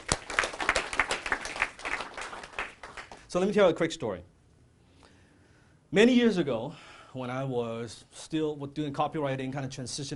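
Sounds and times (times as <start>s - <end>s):
audience applause: 0.0s - 3.2s
speech: 3.3s - 4.3s, 5.9s - 10.1s.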